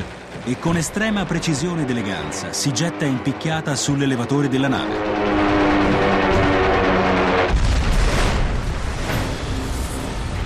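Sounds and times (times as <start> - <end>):
speech: 0.4 - 5.6
225 kg bomb exploding on a ship: 5.7 - 9.6.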